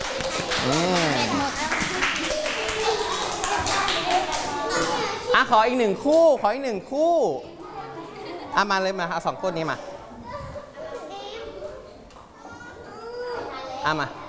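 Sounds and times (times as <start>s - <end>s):
children clapping for a classmate: 0.0s - 5.2s
speech: 0.6s - 1.1s, 5.4s - 7.5s, 8.5s - 9.9s, 13.8s - 14.2s.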